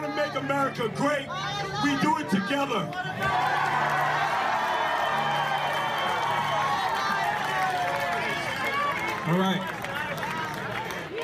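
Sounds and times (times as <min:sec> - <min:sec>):
speech: 0:00.4 - 0:04.0, 0:09.2 - 0:09.7
large crowd cheering at rally: 0:01.8 - 0:11.2
large crowd clapping at rally: 0:02.8 - 0:11.2.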